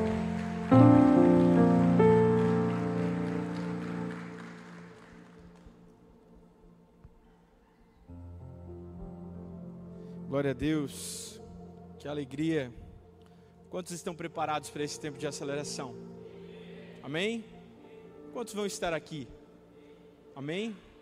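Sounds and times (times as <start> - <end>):
audience applause: 0.0 - 5.8
sustained keyboard chords: 0.0 - 5.9, 8.1 - 19.8
speech: 10.4 - 11.3, 12.0 - 12.8, 13.7 - 16.2, 17.0 - 17.5, 18.3 - 19.4, 20.4 - 20.9.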